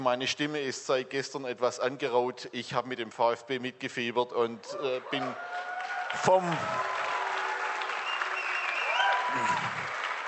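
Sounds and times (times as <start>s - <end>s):
speech: 0.0s - 7.1s, 9.4s - 9.7s
crowd booing: 4.7s - 10.2s.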